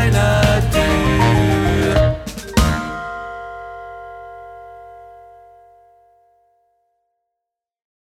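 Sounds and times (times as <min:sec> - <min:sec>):
tenor singing: 0:00.0 - 0:04.2.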